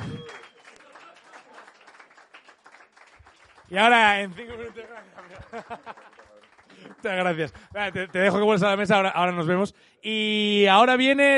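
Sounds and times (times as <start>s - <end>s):
audience applause: 0.0s - 9.1s
speech: 3.7s - 6.2s, 6.8s - 11.3s
laughter: 4.4s - 7.0s.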